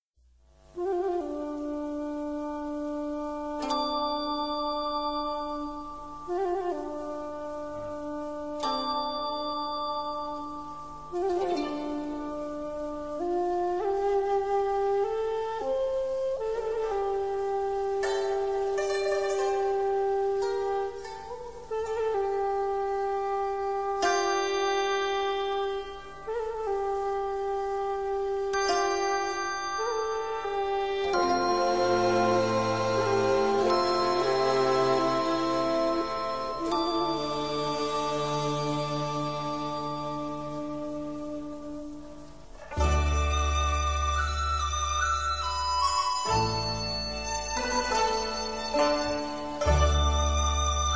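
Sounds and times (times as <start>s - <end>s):
Chinese music: 0.2s - 50.9s.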